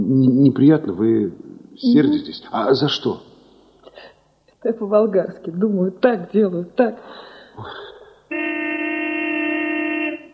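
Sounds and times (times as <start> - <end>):
speech: 0.0 - 3.3, 4.0 - 8.5
pickup truck horn blast near a clinic: 8.3 - 10.3.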